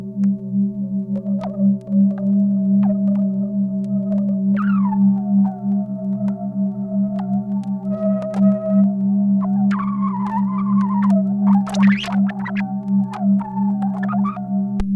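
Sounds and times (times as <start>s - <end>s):
glitchy Juno 106 synthesizer drone: 0.0s - 14.8s.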